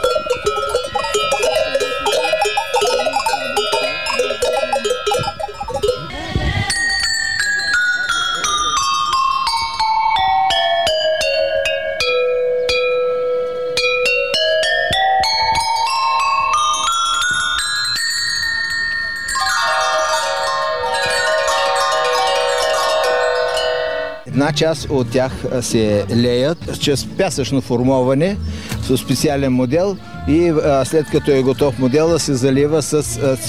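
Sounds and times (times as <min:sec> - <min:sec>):
handmade bronze bells and cowbells of different sizes ringing: 0:00.0 - 0:24.3
speech: 0:24.6 - 0:33.4.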